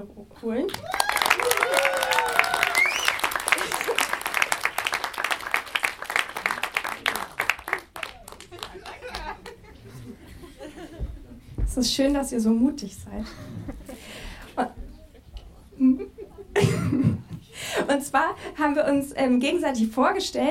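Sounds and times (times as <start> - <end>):
speech: 0.0 - 1.6, 11.8 - 13.7, 17.9 - 20.5
audience applause: 0.7 - 10.0
audience laughter: 3.5 - 4.3, 8.3 - 11.5, 13.2 - 17.2.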